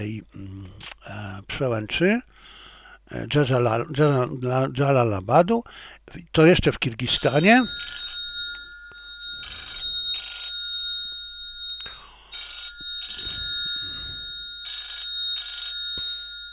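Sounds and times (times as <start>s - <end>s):
speech: 0.0s - 2.3s, 3.1s - 8.0s
telephone ringing: 7.0s - 16.5s.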